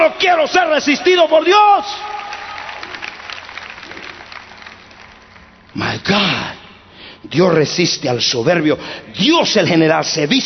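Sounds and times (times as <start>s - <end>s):
speech: 0.1s - 2.2s, 5.8s - 6.6s, 7.2s - 10.4s
audience applause: 2.1s - 5.7s.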